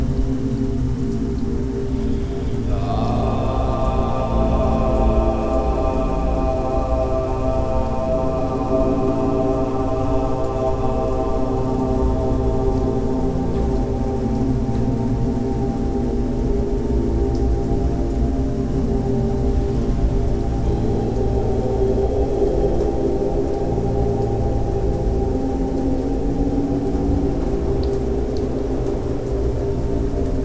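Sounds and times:
rain: 0.0s - 30.4s
om mantra chanting for meditation: 2.2s - 15.1s.

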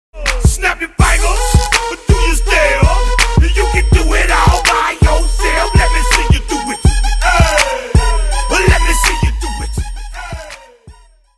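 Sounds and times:
chorus singing: 0.2s - 10.9s.

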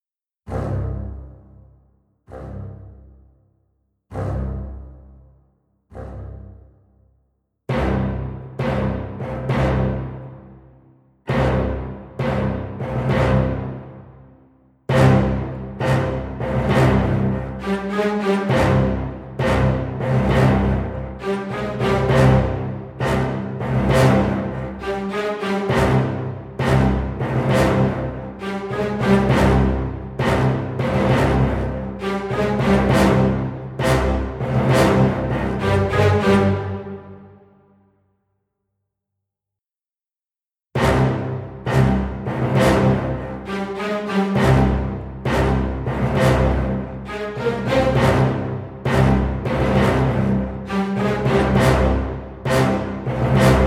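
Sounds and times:
low brass section playing staccato tutti: 7.7s - 37.6s, 40.8s - 53.6s.

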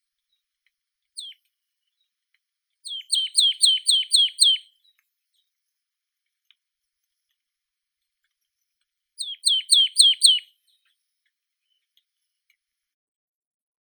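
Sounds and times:
Poecile palustris marsh tit calling: 2.9s - 4.6s, 9.2s - 10.4s.

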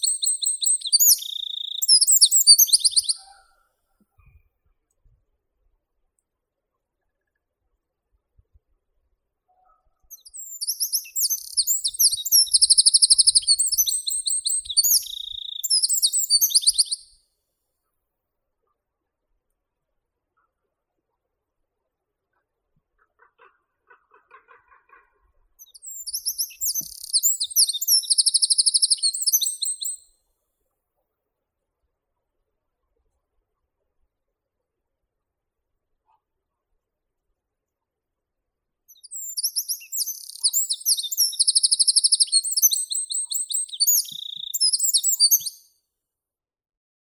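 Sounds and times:
wren Troglodytes troglodytes calling: 0.0s - 3.4s, 10.1s - 17.1s, 25.6s - 30.0s, 38.9s - 45.6s.

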